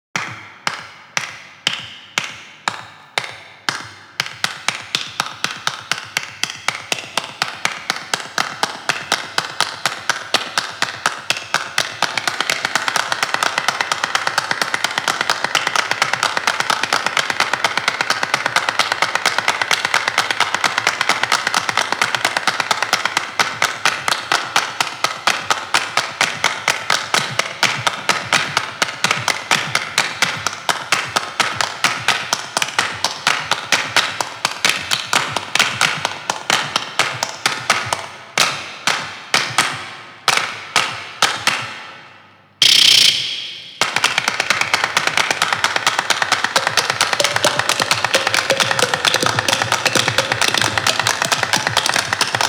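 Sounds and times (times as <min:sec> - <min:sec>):
clapping: 0:00.2 - 0:42.0, 0:42.6 - 0:52.4.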